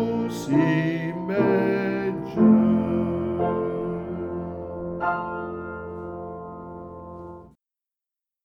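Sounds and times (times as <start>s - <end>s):
person singing a carol: 0.0s - 5.0s
piano: 0.0s - 7.6s.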